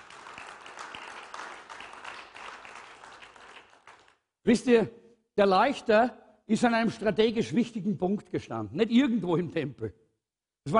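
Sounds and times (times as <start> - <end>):
audience applause: 0.0 - 4.2
speech: 4.4 - 10.0.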